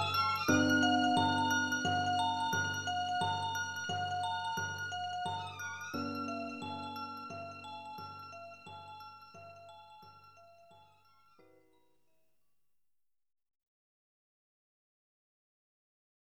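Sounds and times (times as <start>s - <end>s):
tense strings: 0.0s - 10.0s.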